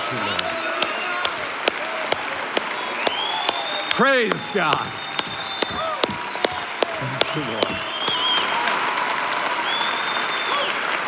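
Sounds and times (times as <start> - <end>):
audience applause: 0.0 - 11.0
faint cheering voices: 0.0 - 11.0
speech: 4.0 - 5.1, 7.0 - 7.6.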